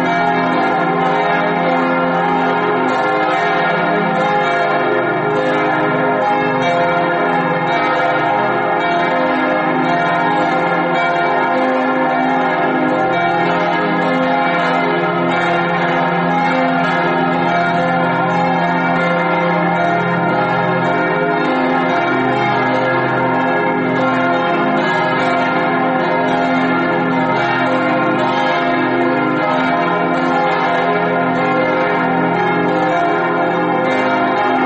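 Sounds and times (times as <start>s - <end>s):
church bells ringing: 0.0s - 34.6s.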